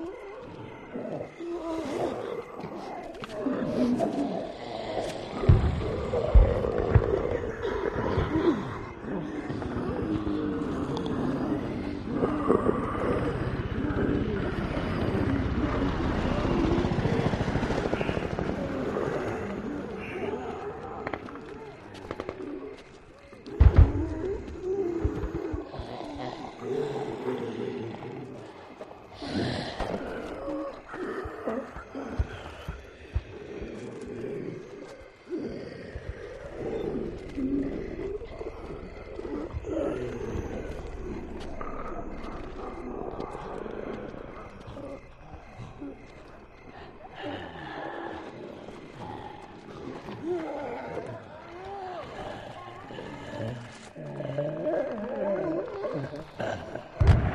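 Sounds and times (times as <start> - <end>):
zombies on the street: 0.0 - 57.3
distant explosions: 5.4 - 7.5, 57.0 - 57.3.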